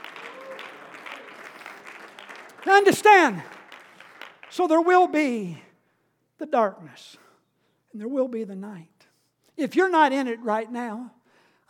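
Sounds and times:
audience shouting: 0:00.0 - 0:01.5
audience clapping: 0:00.0 - 0:05.1
speech: 0:02.6 - 0:03.5, 0:04.6 - 0:05.6, 0:06.4 - 0:07.2, 0:07.9 - 0:08.9, 0:09.6 - 0:11.6.

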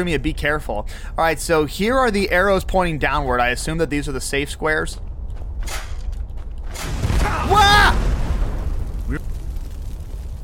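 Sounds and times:
speech: 0:00.0 - 0:05.8, 0:09.1 - 0:09.3
video game fireball burst: 0:06.8 - 0:10.4.

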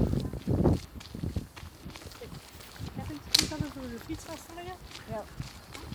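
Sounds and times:
shuffling footsteps: 0:00.0 - 0:05.9
voices of a small crowd approaching: 0:02.0 - 0:05.4
speech: 0:04.1 - 0:05.6.

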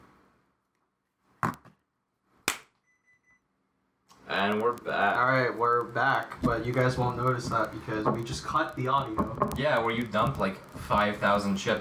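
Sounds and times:
hand clap for edit sync: 0:02.5 - 0:02.7
speech: 0:04.4 - 0:11.7.

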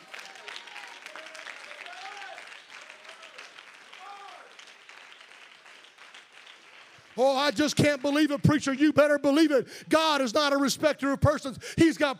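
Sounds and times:
audience clapping: 0:00.0 - 0:09.6
speech: 0:07.2 - 0:12.1.

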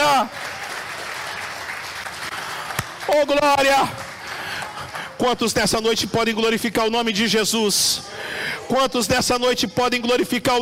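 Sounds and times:
audience applauding: 0:00.0 - 0:05.6
speech: 0:03.1 - 0:04.0, 0:05.2 - 0:10.6.

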